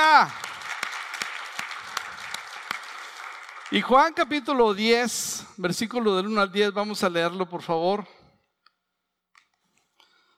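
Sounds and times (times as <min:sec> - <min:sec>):
speech: 0:00.0 - 0:00.4, 0:03.7 - 0:08.2
audience applause: 0:00.0 - 0:04.5.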